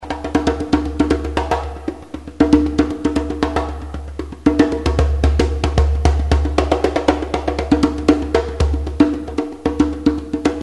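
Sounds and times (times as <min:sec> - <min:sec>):
djembe drumming: 0:00.0 - 0:10.6.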